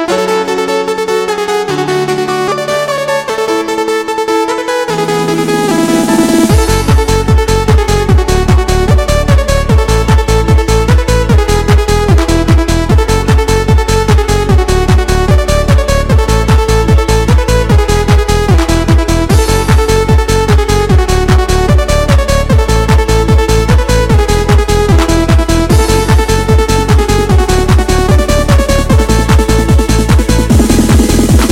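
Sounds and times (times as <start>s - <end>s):
eurodance ringtone: 0.1s - 31.5s.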